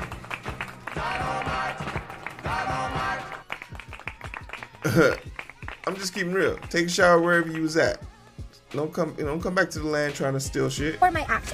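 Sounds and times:
clapping sound effect: 0.0 - 6.7
speech: 4.8 - 8.0, 8.7 - 11.5.

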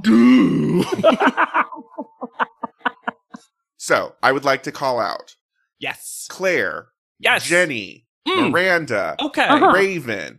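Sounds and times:
speech: 0.0 - 1.6, 3.8 - 10.3
laughter: 0.8 - 3.4, 9.5 - 10.2
voice imitating a trombone: 9.3 - 10.2.

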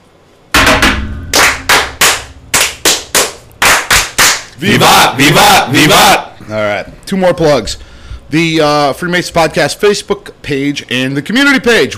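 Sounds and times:
Masonic brethren clapping in unison during a ritual fire: 1.3 - 4.6
speech: 4.6 - 11.9.

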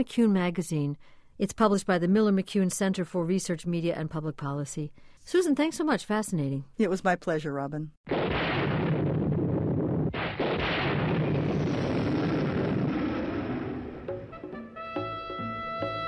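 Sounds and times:
speech: 0.0 - 8.5
loud rumbling thunderclap opening a television theme: 8.1 - 14.4
brassy orchestral television theme: 14.0 - 16.0.

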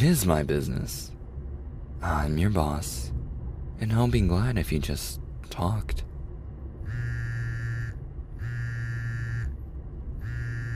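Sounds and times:
speech: 0.0 - 1.2, 2.0 - 3.2, 3.8 - 6.1
phone vibrating with an incoming call: 6.9 - 9.5, 10.2 - 10.7.

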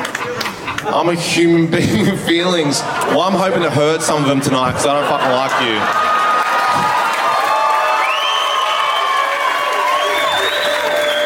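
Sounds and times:
laughter: 0.0 - 7.0
speech: 0.8 - 6.1
crowd cheering: 2.8 - 11.2.

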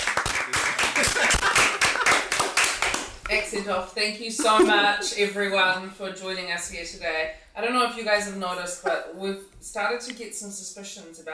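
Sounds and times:
round of applause: 0.0 - 3.2
laughter: 0.6 - 2.6, 4.4 - 5.2
speech: 3.5 - 11.3.

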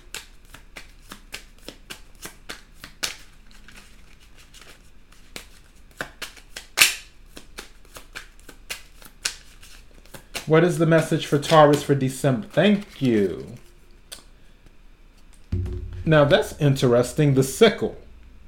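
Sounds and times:
tarot cards being shuffled and drawn: 0.1 - 6.6, 7.3 - 10.5, 11.3 - 13.7
speech: 10.5 - 13.6, 16.1 - 18.0.

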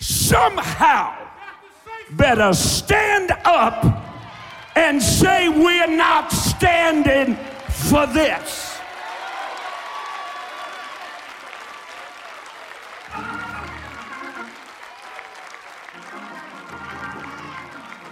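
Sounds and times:
speech: 0.3 - 1.2, 2.1 - 4.0, 4.8 - 8.7
large audience clapping: 3.8 - 18.1.

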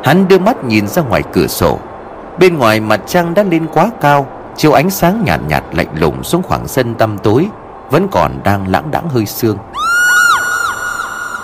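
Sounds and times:
speech: 0.0 - 10.0
loud piercing scream: 9.7 - 11.4.

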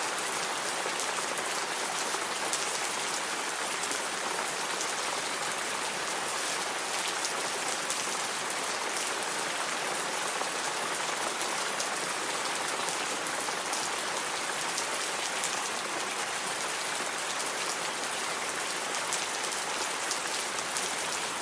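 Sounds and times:
rain falling on a nearby surface: 0.0 - 21.4.

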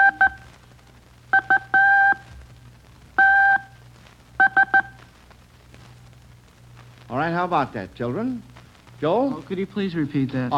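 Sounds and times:
Morse code beeps over telegraph wire: 0.0 - 0.4, 1.3 - 2.2, 3.2 - 3.8, 4.4 - 5.0
speech: 7.3 - 10.5.

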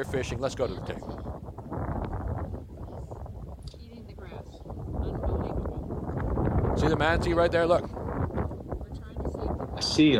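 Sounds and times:
speech: 0.0 - 1.5, 6.8 - 8.0, 9.8 - 10.1
strong wind buffeting the microphone on an outdoor video recording in Port Charlotte, Florida: 0.0 - 10.1.

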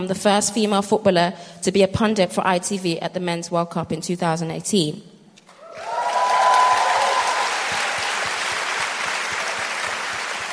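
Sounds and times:
speech: 0.0 - 5.1
audience applause: 5.5 - 10.5.

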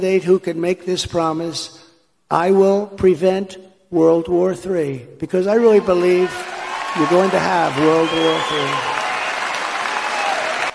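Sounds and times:
speech: 0.0 - 9.0
rally crowd cheering and applauding: 5.6 - 10.7.

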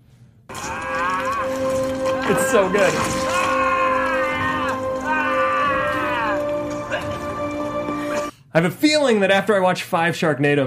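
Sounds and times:
feral scream: 0.5 - 8.2
speech: 2.3 - 3.3, 8.5 - 10.6.

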